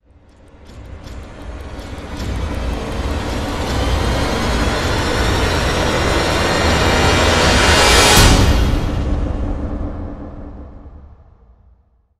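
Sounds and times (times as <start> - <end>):
extended string swell: 1.2 - 10.6.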